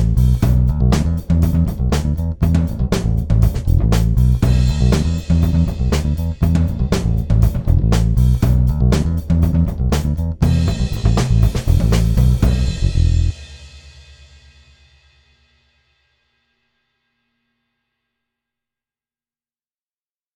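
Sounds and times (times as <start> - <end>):
realistic drums: 0.0 - 16.2.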